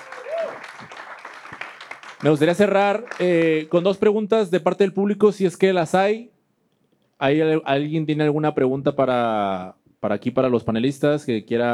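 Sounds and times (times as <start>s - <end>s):
audience applause for panelists: 0.0s - 3.7s
speech: 2.2s - 6.3s, 7.2s - 11.7s.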